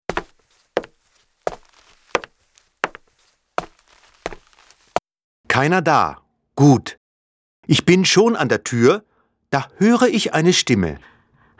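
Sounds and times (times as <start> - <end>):
footsteps on a wooden floor walking through a living room: 0.1 - 5.0
speech: 5.6 - 7.0, 7.7 - 11.5.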